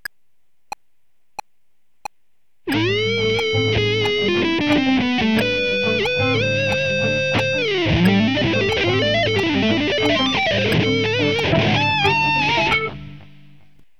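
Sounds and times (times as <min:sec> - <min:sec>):
guitar lick: 0:02.7 - 0:13.8.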